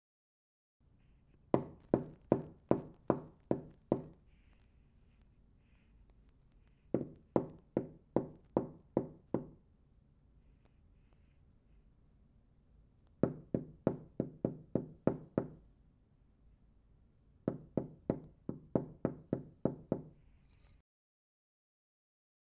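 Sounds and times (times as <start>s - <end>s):
hammering on a wall gently: 1.5s - 4.2s, 6.9s - 9.6s, 13.2s - 15.6s, 17.4s - 20.2s.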